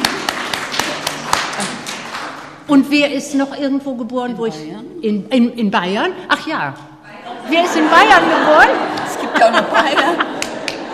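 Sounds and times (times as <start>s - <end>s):
audience hand claps: 0.0s - 2.6s, 10.2s - 10.9s
speech: 2.7s - 6.9s, 7.5s - 10.3s
laughter: 7.1s - 10.9s.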